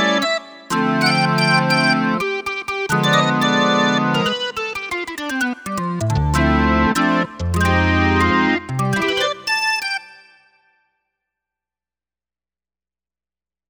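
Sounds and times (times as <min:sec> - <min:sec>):
percussive organ: 0:00.0 - 0:10.2.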